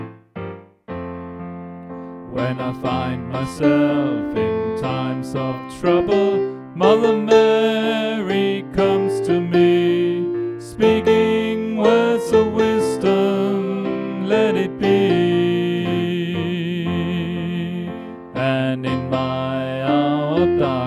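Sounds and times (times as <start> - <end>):
soprano voice: 2.3 - 20.8.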